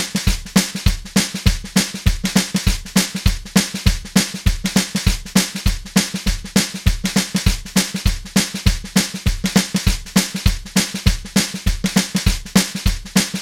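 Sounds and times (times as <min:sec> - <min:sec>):
drums playing train shuffle beat: 0:00.0 - 0:13.4.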